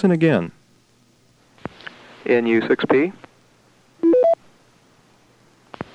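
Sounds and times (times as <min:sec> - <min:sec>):
speech: 0:00.0 - 0:00.6, 0:02.2 - 0:03.2
touch-tone keypad tones: 0:04.0 - 0:04.4.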